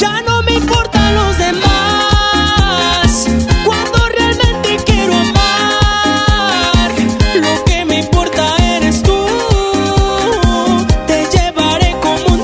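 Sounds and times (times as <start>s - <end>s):
tropical pop music: 0.0s - 12.4s.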